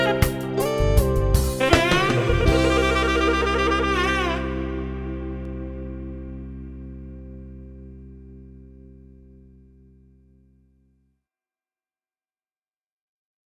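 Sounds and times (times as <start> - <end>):
Latin jazz music: 0.0 - 8.6.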